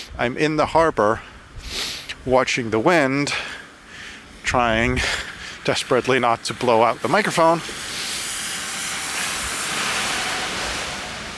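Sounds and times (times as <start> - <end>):
speech: 0.2 - 1.3, 2.2 - 3.5, 4.5 - 7.9
garbage truck hissing: 1.6 - 2.3, 3.7 - 11.3.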